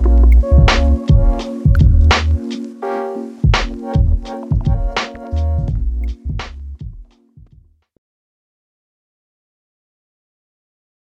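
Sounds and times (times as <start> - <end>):
natural swing LFO modulation: 0.0 - 6.4.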